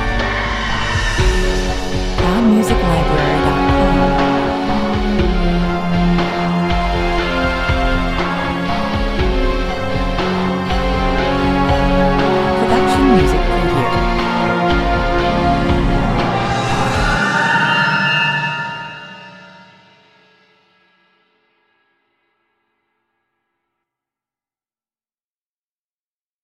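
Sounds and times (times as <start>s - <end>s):
dark eerie soundscape: 0.0s - 20.1s.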